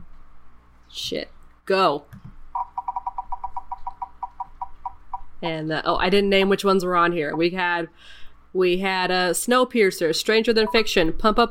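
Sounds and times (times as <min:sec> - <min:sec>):
speech: 0:01.0 - 0:02.2, 0:05.4 - 0:11.5
spinning wheel beeps and boops: 0:02.6 - 0:05.2.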